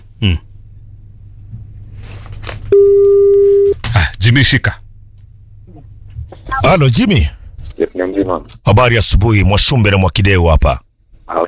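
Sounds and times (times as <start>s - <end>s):
speech: 0.2s - 0.5s, 4.3s - 4.8s, 6.7s - 7.4s, 8.0s - 11.4s
telephone tone as a call goes out to a radio listener: 2.7s - 3.8s.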